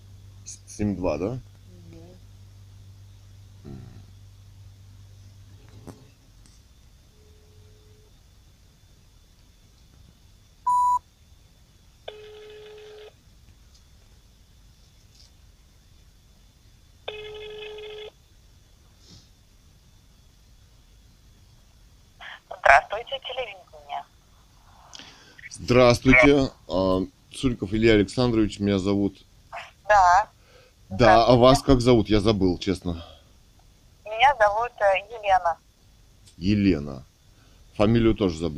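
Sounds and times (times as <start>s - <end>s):
speech: 0.5s - 1.5s, 25.7s - 29.3s, 29.9s - 30.3s, 31.0s - 33.1s, 34.9s - 35.7s, 36.4s - 37.1s, 37.8s - 38.5s
dialing beep: 10.7s - 11.0s
long buzzy phone rings: 12.1s - 13.1s, 17.1s - 18.1s
low telephone dial tone: 12.1s - 13.2s, 17.1s - 18.1s.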